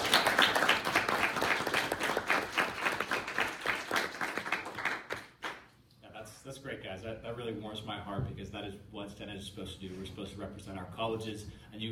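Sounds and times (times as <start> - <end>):
round of applause: 0.0 - 5.7
speech: 7.5 - 11.8.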